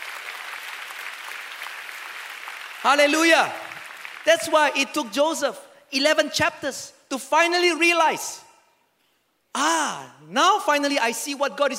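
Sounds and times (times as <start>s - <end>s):
audience applauding: 0.0s - 4.6s
speech: 2.8s - 3.6s, 4.2s - 8.4s, 9.5s - 11.7s.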